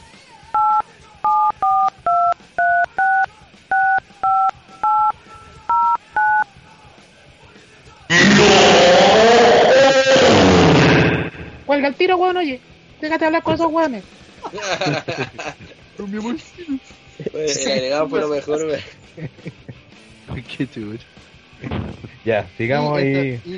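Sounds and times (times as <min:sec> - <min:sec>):
touch-tone beeps of a telephone number dialled on a keypad: 0:00.6 - 0:06.4
long burst of loud harsh noise: 0:08.1 - 0:11.7
speech: 0:11.9 - 0:19.6, 0:20.4 - 0:23.5
laughter: 0:14.4 - 0:19.9.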